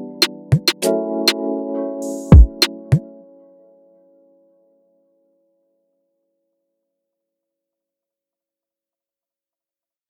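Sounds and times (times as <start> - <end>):
Afrobeat instrumental: 0.0 - 3.1.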